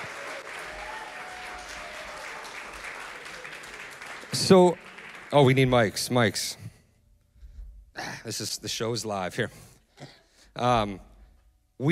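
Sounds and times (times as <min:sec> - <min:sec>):
audience applause: 0:00.0 - 0:06.0
speech: 0:04.4 - 0:06.6, 0:08.2 - 0:11.1.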